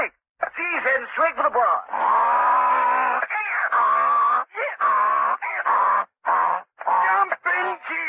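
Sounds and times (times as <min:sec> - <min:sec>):
speech: 0:00.9 - 0:02.4
donkey braying: 0:01.8 - 0:08.0.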